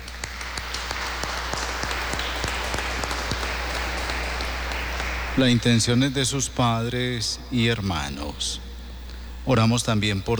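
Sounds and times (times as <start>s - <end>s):
audience applause: 0.0s - 6.8s
low steady hum: 0.0s - 10.3s
speech: 5.4s - 8.6s, 9.5s - 10.3s.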